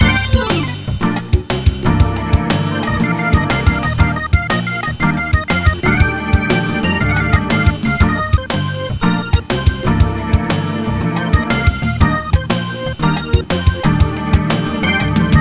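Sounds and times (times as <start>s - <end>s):
night music: 0.0s - 15.3s.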